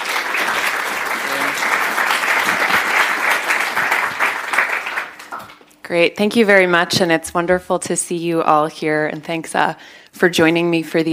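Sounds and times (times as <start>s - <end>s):
audience applause welcoming a speaker: 0.0s - 5.7s
speech: 5.9s - 11.1s.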